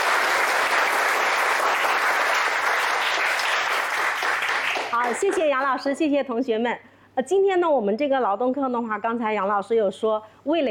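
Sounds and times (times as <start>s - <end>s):
class of students applauding: 0.0s - 5.6s
speech: 5.0s - 10.6s.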